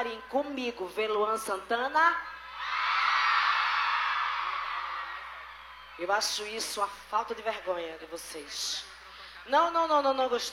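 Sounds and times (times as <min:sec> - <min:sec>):
speech: 0:00.0 - 0:02.4, 0:06.0 - 0:10.5
audience screaming at a live concert: 0:02.4 - 0:06.0.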